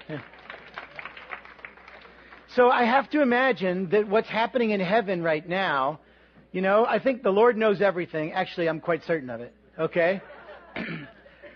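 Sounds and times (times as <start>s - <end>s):
audience applause: 0.0s - 2.6s
speech: 0.1s - 0.4s, 2.6s - 11.0s
laughter: 10.0s - 11.5s.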